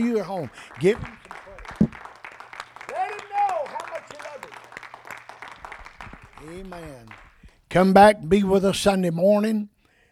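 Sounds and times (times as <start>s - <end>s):
speech: 0.0s - 1.3s, 6.4s - 9.7s
crowd clapping: 0.0s - 7.7s.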